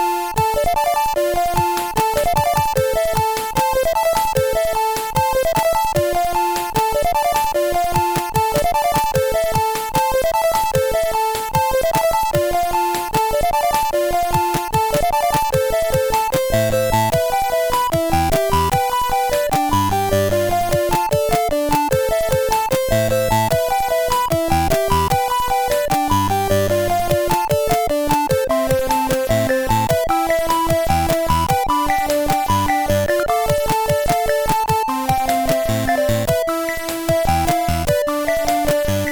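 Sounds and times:
acid bells on a CSG8580R5 SID chip: 0.2 - 39.0.

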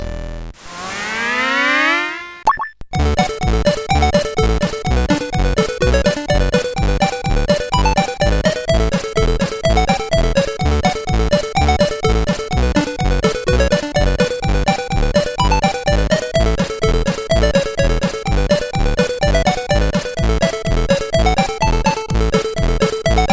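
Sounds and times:
tune on CSG8580R5 chip: 0.6 - 23.3.

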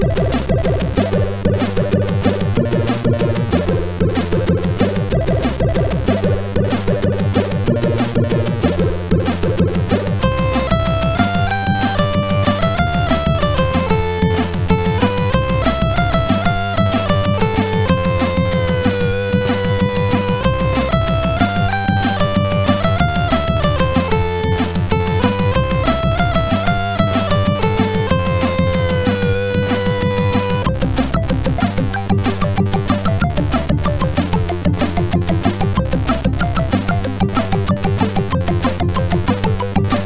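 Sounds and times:
MOS6581R4 chip tune: 0.0 - 40.0.

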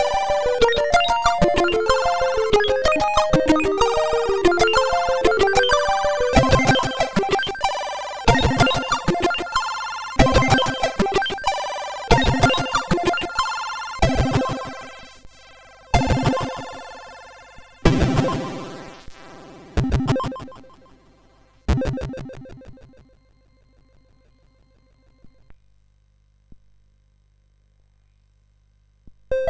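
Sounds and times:
MOS6581R4 SID chip medieval tune: 0.0 - 15.1, 16.0 - 21.1.

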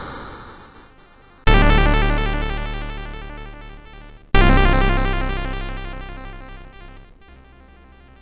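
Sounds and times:
intro music on MOS6581R2 chip: 1.5 - 7.3.

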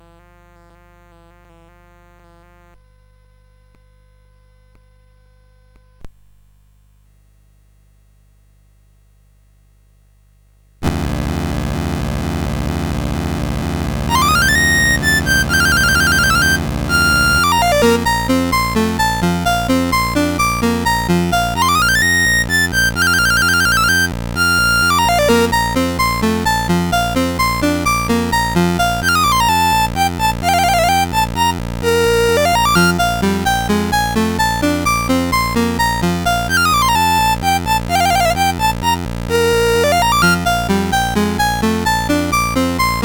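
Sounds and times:
dance music: 10.9 - 43.0.

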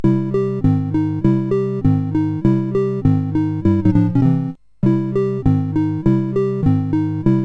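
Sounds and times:
SID CSG8580R5 chip game music: 0.0 - 7.4.

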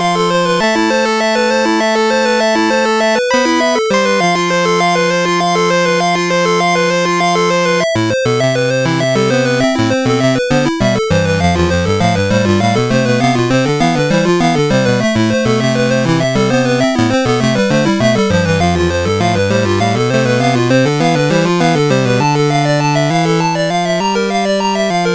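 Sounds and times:
chiptune synth ocean sound from a MOS6581R4 SID chip: 0.2 - 25.1.

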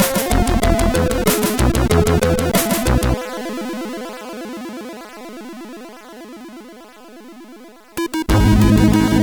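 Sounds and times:
music on SID chip CSG8580R5: 0.0 - 3.2, 8.0 - 9.2.

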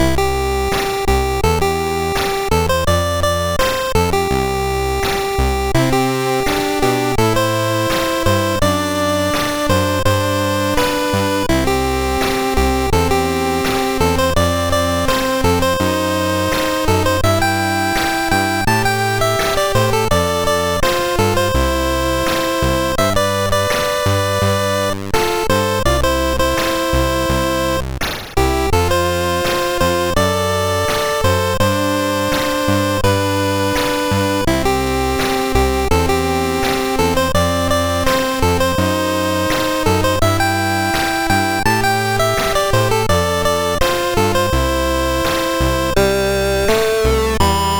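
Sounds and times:
MOS6581R3 SID chip synth sample: 0.0 - 47.7.

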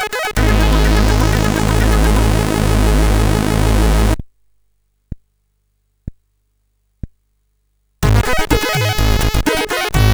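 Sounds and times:
rolling chiptune melody on SID CSG8580R5 chip: 0.0 - 4.2, 8.0 - 10.1.

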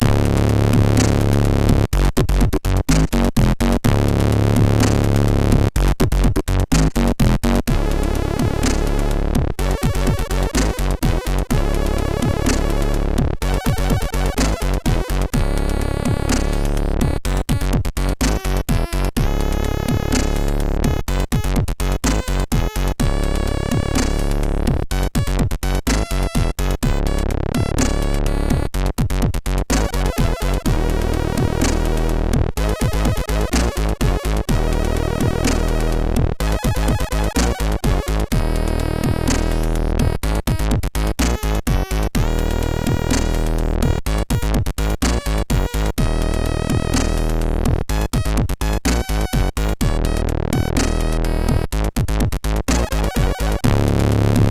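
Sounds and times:
MOS6581R3 SID chip music: 0.0 - 54.4.

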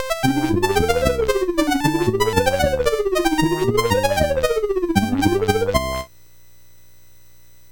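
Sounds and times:
MOS6581R4 chip music: 0.0 - 6.1.

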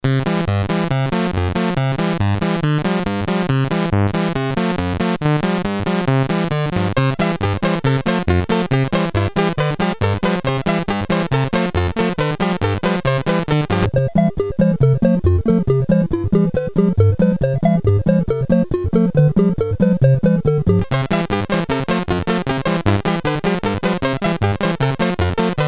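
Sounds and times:
SID 8580 chip synth sound: 0.1 - 25.6.

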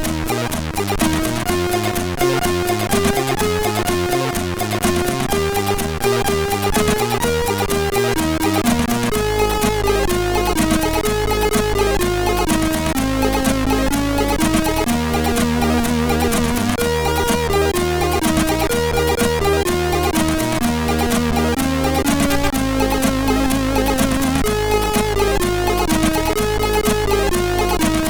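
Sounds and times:
tango music on MOS6581R3 sound chip: 0.0 - 28.0.

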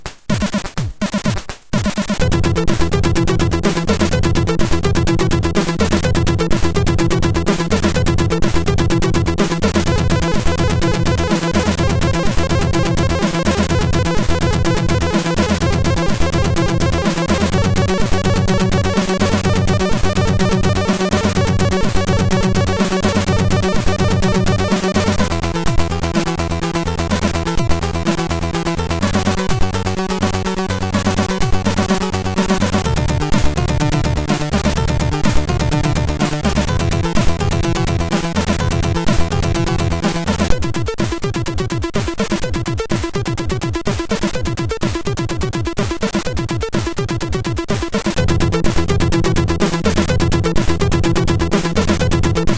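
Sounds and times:
short techno on MOS6581 SID chip: 0.4 - 52.5.

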